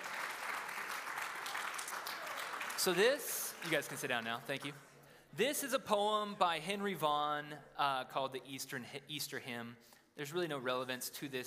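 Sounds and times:
audience applause: 0:00.0 - 0:04.7
speech: 0:02.8 - 0:11.4.

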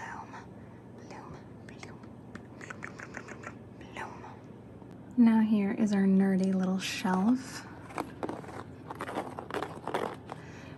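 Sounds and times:
speech: 0:05.2 - 0:07.7
paper pages of a blank notebook rustling: 0:07.8 - 0:10.5.

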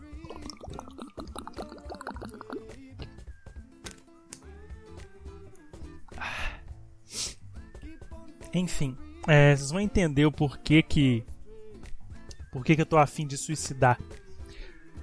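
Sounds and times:
person drinking a glass of water: 0:00.2 - 0:03.2
speech: 0:08.6 - 0:11.3, 0:12.5 - 0:14.2.

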